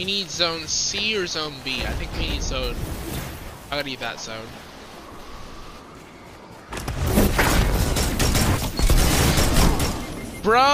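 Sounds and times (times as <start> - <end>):
speech: 0.0 - 3.0, 3.7 - 4.6, 10.4 - 10.7
shotgun fire in the video game Destiny 2 during a Crucible match: 6.7 - 10.2.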